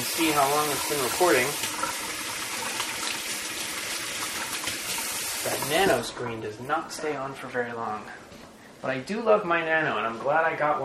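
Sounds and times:
tap water running as hands are washed: 0:00.0 - 0:07.0
speech: 0:00.2 - 0:02.2, 0:05.4 - 0:10.8.

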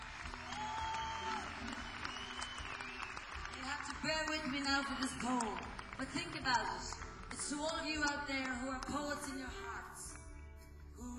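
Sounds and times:
audience applause for the band: 0:00.0 - 0:07.8
speech: 0:04.0 - 0:10.1.

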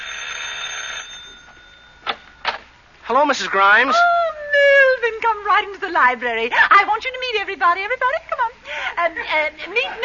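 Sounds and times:
doorbell ringing: 0:00.0 - 0:02.4
speech: 0:03.1 - 0:04.2, 0:05.1 - 0:10.0.

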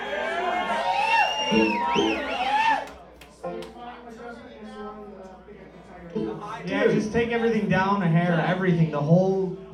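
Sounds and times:
audience cheering and whooping for the bass player at a live show: 0:00.0 - 0:03.0
speech: 0:01.5 - 0:02.4, 0:07.1 - 0:09.6.

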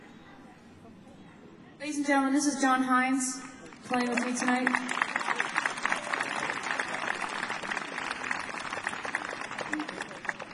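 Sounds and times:
speech: 0:01.8 - 0:05.0
audience clapping: 0:03.6 - 0:10.5.

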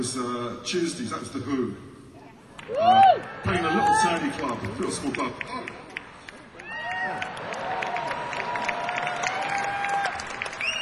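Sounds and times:
speech: 0:00.0 - 0:01.9, 0:02.7 - 0:05.8
audience applause: 0:02.8 - 0:10.7.

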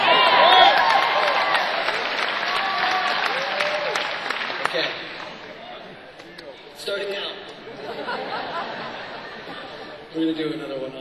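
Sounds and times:
applause: 0:00.0 - 0:05.5
concert crowd cheering, whooping and whistling: 0:00.0 - 0:05.6
laughter: 0:07.5 - 0:10.1
speech: 0:10.3 - 0:10.9.

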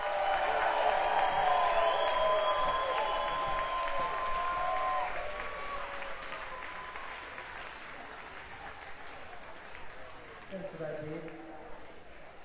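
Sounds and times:
audience clapping to welcome a band on stage: 0:00.0 - 0:12.4
audience whoops and whistles: 0:01.1 - 0:05.2.

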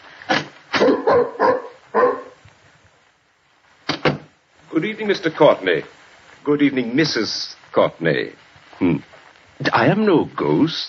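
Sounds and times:
dog barking: 0:00.7 - 0:02.4
speech: 0:04.8 - 0:10.8.

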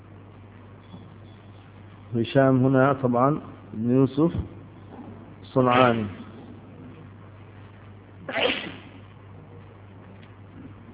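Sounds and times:
speech: 0:02.1 - 0:04.6, 0:05.5 - 0:06.2
person sneezing: 0:08.3 - 0:08.9.

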